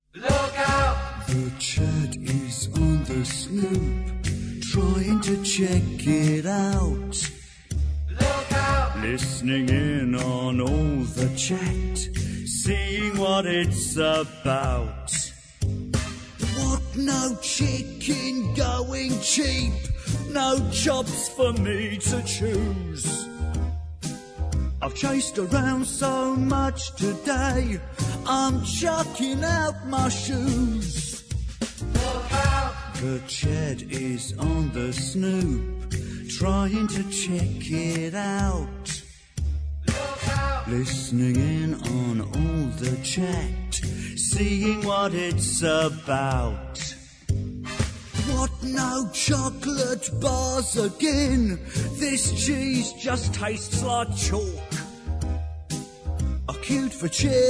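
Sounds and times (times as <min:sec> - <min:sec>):
song: 0:00.2 - 0:57.4.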